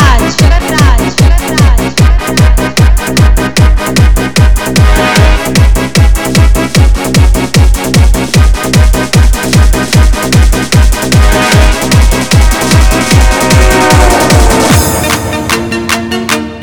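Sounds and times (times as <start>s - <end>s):
electronic MIDI instrumental hard mix: 0.0s - 16.6s.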